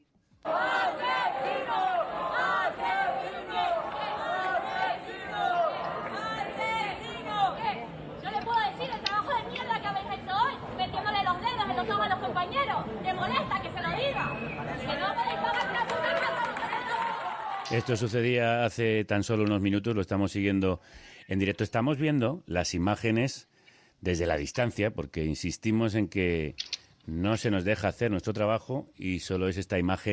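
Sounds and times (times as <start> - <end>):
crowd of protesters shouting and chanting behind a police cordon: 0.4 - 18.0
speech: 17.7 - 30.1.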